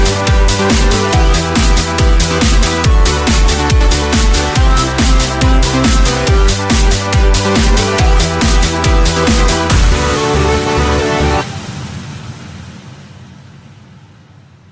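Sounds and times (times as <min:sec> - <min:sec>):
retro music: 0:00.0 - 0:11.6.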